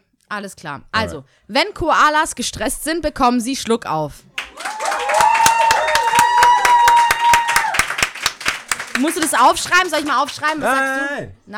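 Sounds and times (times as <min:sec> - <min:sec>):
speech: 0:00.3 - 0:04.3, 0:09.0 - 0:11.5
audience clapping: 0:04.4 - 0:11.2.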